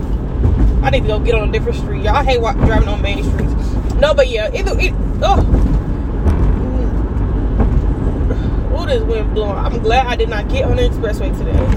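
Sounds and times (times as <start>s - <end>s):
Dodge SRT muscle car engine roaring past: 0.0s - 11.7s
speech: 0.9s - 5.7s, 8.9s - 11.7s.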